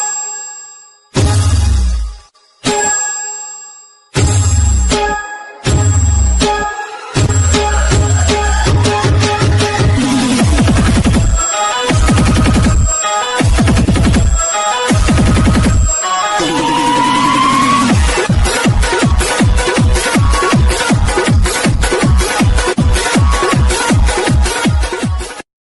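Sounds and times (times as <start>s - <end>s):
instrumental music for Holi: 0.9s - 25.5s.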